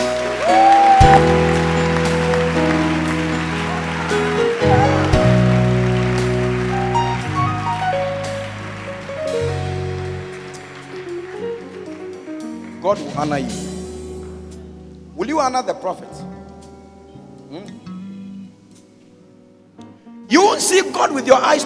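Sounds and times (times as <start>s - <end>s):
audience clapping: 0.0s - 14.4s
speech: 13.2s - 13.6s, 15.5s - 16.4s, 20.3s - 21.6s.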